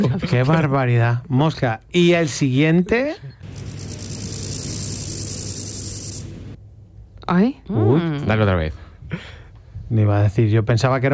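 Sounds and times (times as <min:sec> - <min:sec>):
speech: 0:00.0 - 0:03.7, 0:07.3 - 0:11.1
grasshopper chirping: 0:03.4 - 0:06.6.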